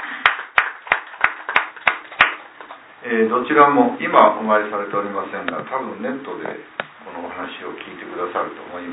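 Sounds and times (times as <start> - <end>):
audience clapping in unison to celebrate birthdays: 0.0 - 2.7
speech: 3.0 - 6.8, 7.4 - 8.9.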